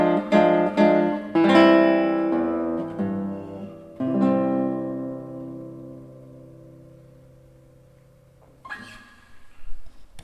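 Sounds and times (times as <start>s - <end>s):
nocturne played on guitar: 0.0s - 9.8s.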